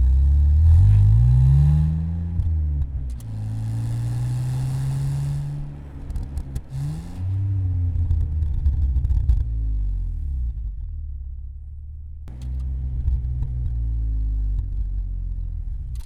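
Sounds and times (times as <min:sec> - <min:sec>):
straight-six car engine: 0:00.0 - 0:16.0.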